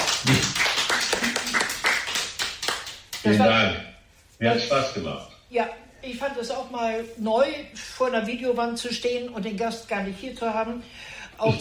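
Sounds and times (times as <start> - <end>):
audience applause: 0.0 - 3.3
speech: 3.2 - 11.5.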